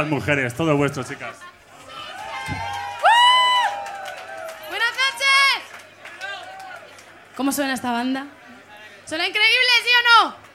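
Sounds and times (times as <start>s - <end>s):
speech: 0.0s - 1.6s, 7.4s - 8.4s, 9.1s - 10.4s
audience applause and cheering for band: 1.8s - 7.4s.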